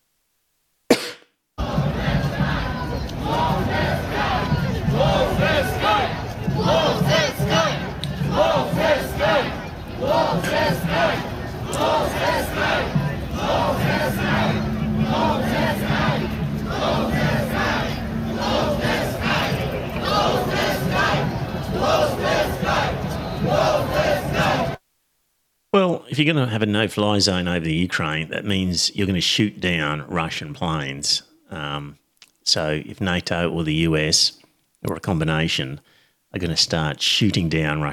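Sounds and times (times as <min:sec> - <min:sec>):
coughs: 0:00.9 - 0:01.3
demonstration crowd chanting in unison: 0:01.6 - 0:24.8
speech: 0:26.2 - 0:37.9.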